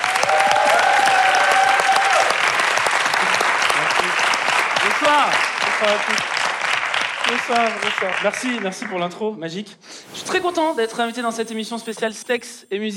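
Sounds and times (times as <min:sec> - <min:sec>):
audience applause: 0:00.0 - 0:09.0
speech: 0:05.1 - 0:06.4, 0:07.3 - 0:12.9.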